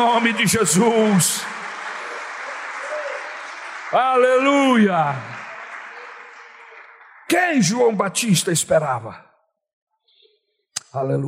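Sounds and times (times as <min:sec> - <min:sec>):
speech: 0:00.0 - 0:01.6, 0:03.9 - 0:05.4, 0:07.3 - 0:09.3, 0:10.9 - 0:11.2
audience applauding: 0:00.0 - 0:08.8.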